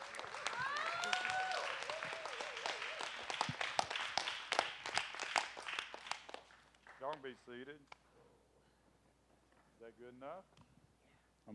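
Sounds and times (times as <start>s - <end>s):
audience applause: 0.0s - 7.2s
speech: 7.2s - 8.0s, 9.8s - 10.6s.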